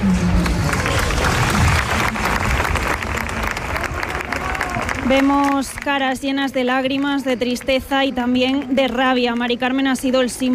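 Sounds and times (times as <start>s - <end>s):
crowd applauding after a minute of silence: 0.1s - 6.1s
speech: 5.1s - 10.5s.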